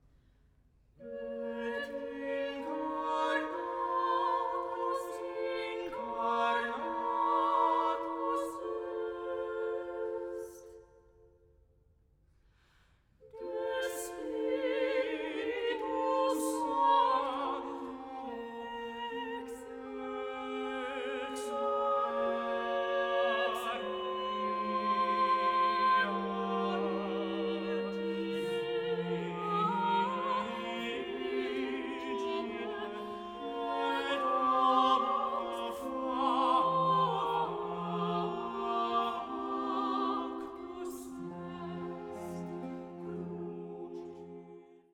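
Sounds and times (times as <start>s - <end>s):
choral mass music: 1.0s - 11.5s, 12.6s - 44.9s.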